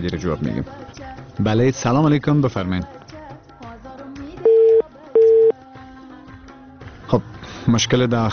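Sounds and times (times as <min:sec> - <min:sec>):
speech: 0:00.0 - 0:03.0, 0:07.1 - 0:08.3
telephone busy tone after disconnected call: 0:04.5 - 0:05.5.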